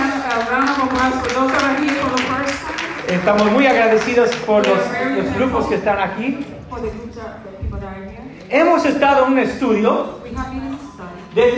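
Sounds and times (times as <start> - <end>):
audience applause: 0.0 - 5.1
speech: 3.2 - 10.8, 11.4 - 11.5.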